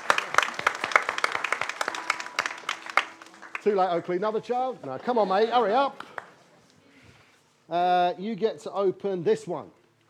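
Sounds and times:
round of applause: 0.0s - 4.6s, 6.0s - 6.5s
speech: 3.6s - 6.0s, 7.7s - 9.8s.

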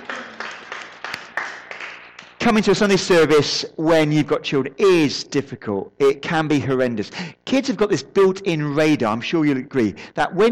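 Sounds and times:
audience applause: 0.0s - 2.4s
speech: 2.4s - 10.5s.

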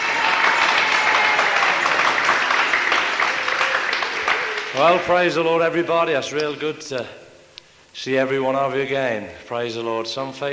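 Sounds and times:
audience applause: 0.0s - 5.5s
speech: 4.8s - 7.2s, 8.0s - 10.5s.

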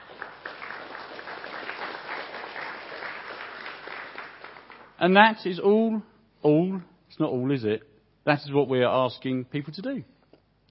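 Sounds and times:
round of applause: 0.0s - 5.0s
speech: 5.0s - 10.1s.

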